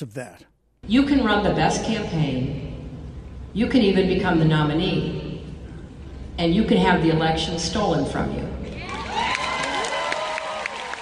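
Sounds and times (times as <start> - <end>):
speech: 0.0 - 2.8, 3.6 - 5.2, 6.4 - 9.3
voices cheering and whooping: 8.8 - 10.9
audience clapping: 8.9 - 11.0.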